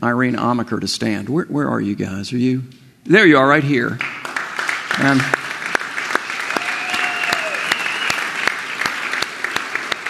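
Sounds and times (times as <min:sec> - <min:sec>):
speech: 0:00.0 - 0:04.3, 0:05.0 - 0:05.4
audience clapping during a service: 0:03.9 - 0:10.0.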